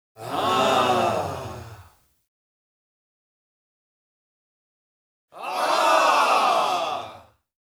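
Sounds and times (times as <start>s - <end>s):
crowd: 0.2s - 2.0s, 5.3s - 7.4s.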